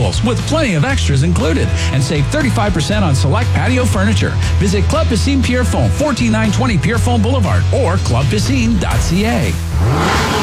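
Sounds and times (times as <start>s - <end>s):
speech: 0.2s - 10.1s
car engine revving at a summer car meet: 8.7s - 10.4s.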